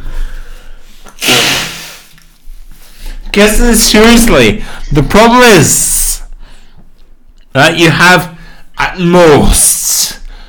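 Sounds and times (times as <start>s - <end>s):
person blowing nose: 1.0s - 2.2s
speech: 3.4s - 5.9s, 7.6s - 8.3s, 9.0s - 10.0s.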